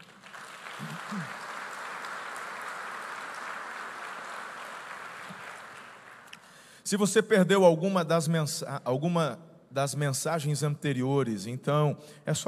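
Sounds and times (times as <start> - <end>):
audience applause: 0.0 - 6.4
speech: 0.8 - 1.4, 6.9 - 12.4.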